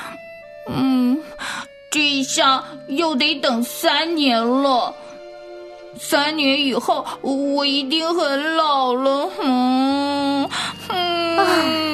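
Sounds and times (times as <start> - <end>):
speech: 2.2 - 5.1, 6.0 - 11.8
young boy crying: 9.3 - 11.9.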